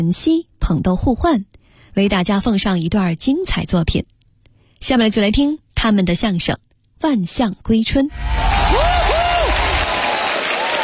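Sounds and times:
speech: 0.0s - 4.1s, 4.8s - 8.4s
audience applause at a live crosstalk comedy show: 8.2s - 10.8s.

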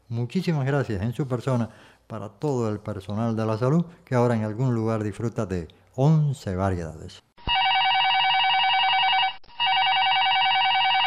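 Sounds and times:
speech: 0.1s - 7.2s
electric bell ringing: 7.5s - 11.0s.

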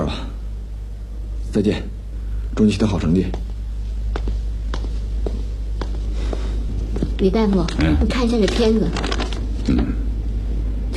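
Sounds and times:
constant low hum: 0.0s - 10.9s
speech: 1.5s - 2.0s, 2.6s - 3.5s, 7.2s - 10.0s
footsteps of someone walking away: 3.2s - 8.6s.

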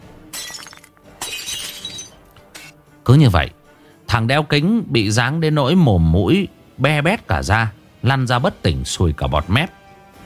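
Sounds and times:
glass bottle smashing against a man: 0.3s - 2.3s
glass shards scattering and tinkling: 0.4s - 2.2s
speech: 3.1s - 3.6s, 4.2s - 9.8s.

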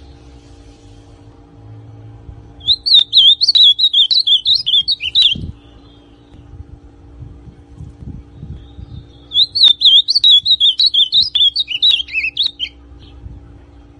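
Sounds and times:
ultramarine grosbeak song: 2.6s - 6.5s, 8.3s - 13.2s.

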